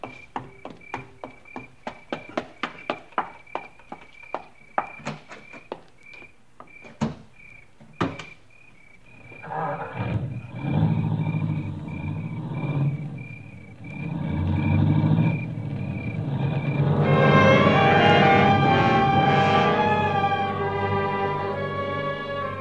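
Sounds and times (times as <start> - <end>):
car engine pulling away: 9.8 - 22.6
sustained tonal swell: 16.8 - 22.6.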